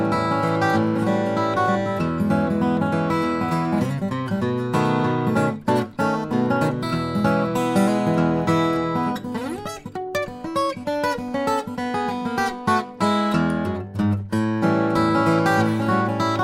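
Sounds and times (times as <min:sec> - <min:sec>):
steel-string flattop guitar: 0:00.0 - 0:16.4.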